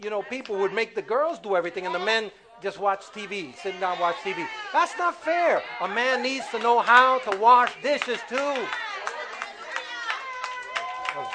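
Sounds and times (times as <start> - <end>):
speech: 0.0 - 8.8
audience chatter: 0.0 - 11.3
audience clapping: 6.3 - 11.3.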